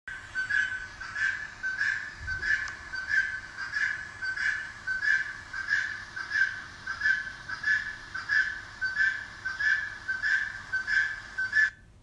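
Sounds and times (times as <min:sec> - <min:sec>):
noise: 0:00.1 - 0:12.0.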